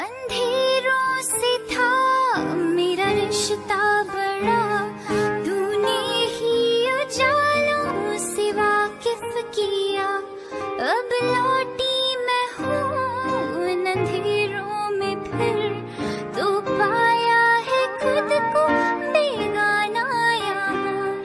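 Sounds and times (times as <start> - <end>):
woman singing a sad song ringtone: 0.0 - 21.2.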